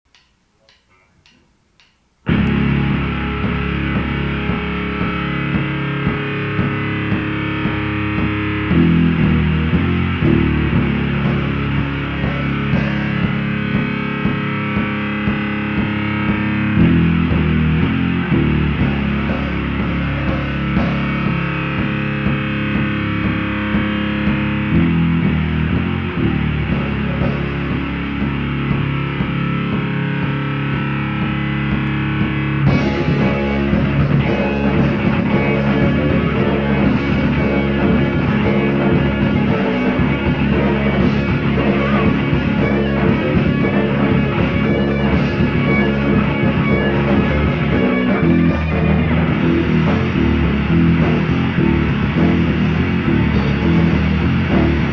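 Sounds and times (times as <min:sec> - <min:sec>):
instrumental music: 0:00.1 - 0:54.9.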